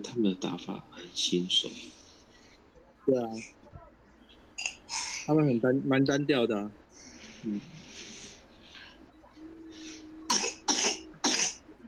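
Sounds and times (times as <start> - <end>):
speech: 0.0 - 2.0, 3.1 - 3.6, 5.3 - 6.8, 7.4 - 7.8
child coughing: 10.3 - 11.6.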